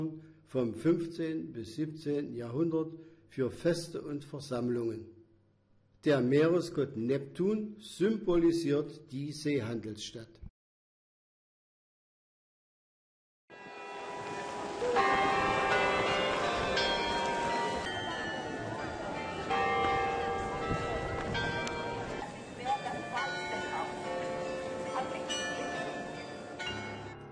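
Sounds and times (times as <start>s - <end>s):
speech: 0.0s - 5.2s, 6.0s - 10.5s
church bells pealing: 13.5s - 27.3s
faint voices murmuring: 14.2s - 26.6s.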